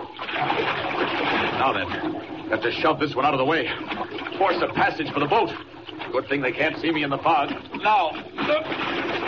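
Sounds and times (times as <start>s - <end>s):
splash diving into water: 0.1s - 2.2s, 7.4s - 9.2s
speech: 1.7s - 9.2s.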